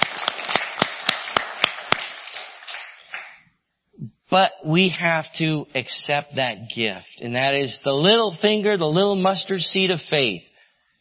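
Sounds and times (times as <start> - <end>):
audience applauding: 0.0 - 3.4
speech: 4.3 - 10.9.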